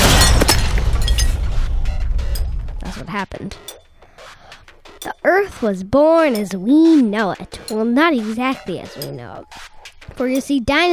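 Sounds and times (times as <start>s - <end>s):
explosion sound effect: 0.0s - 2.8s
speech: 3.1s - 3.8s, 5.0s - 10.9s.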